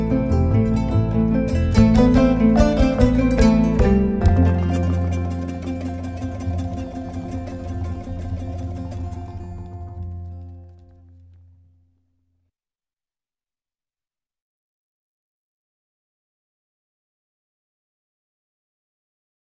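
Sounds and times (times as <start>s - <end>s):
kora playing: 0.0s - 11.7s.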